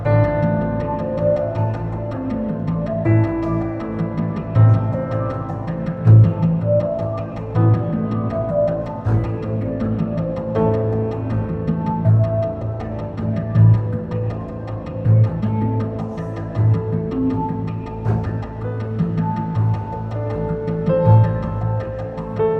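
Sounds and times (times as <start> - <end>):
music outdoors in a desert: 0.0 - 22.5.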